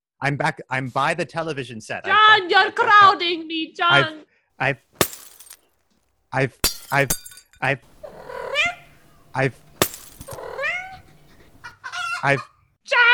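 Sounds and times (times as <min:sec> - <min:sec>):
speech: 0:00.2 - 0:05.0, 0:06.3 - 0:08.2, 0:09.3 - 0:09.6, 0:12.2 - 0:13.0
glasses being smashed: 0:05.0 - 0:05.6, 0:06.6 - 0:11.7.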